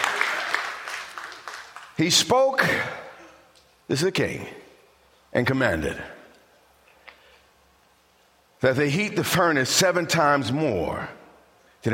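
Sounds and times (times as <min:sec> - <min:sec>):
crowd clapping: 0:00.0 - 0:02.8
speech: 0:02.0 - 0:03.0, 0:03.9 - 0:04.6, 0:05.3 - 0:06.2, 0:08.6 - 0:11.2.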